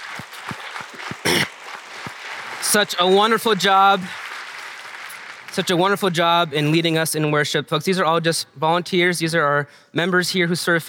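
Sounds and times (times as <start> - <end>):
audience clapping: 0.0 - 6.9
speech: 2.7 - 4.2, 5.6 - 10.8.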